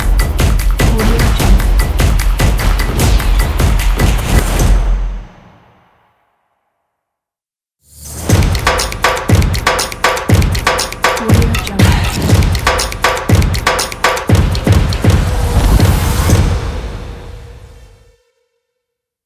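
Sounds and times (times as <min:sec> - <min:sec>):
drum stomps for a logo music: 0:00.0 - 0:04.9, 0:08.3 - 0:16.6.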